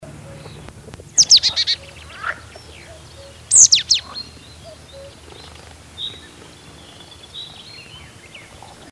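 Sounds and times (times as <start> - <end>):
Poecile palustris calling: 0.2 - 8.9.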